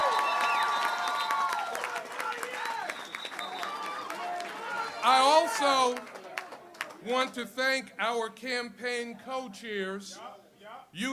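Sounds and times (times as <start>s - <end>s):
cheers and whoops: 0.0s - 5.9s
crowd clapping: 0.0s - 7.4s
speech: 5.0s - 6.1s, 7.0s - 10.3s, 11.0s - 11.1s.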